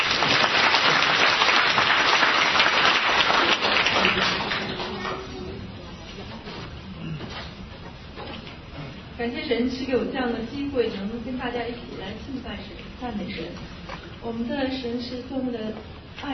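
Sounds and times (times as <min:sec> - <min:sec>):
audience applause welcoming a singer: 0:00.0 - 0:05.0
speech: 0:09.5 - 0:16.3.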